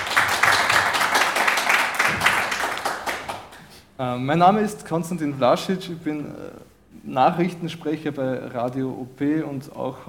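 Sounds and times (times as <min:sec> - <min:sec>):
audience clapping: 0:00.0 - 0:03.7
speech: 0:04.0 - 0:10.0.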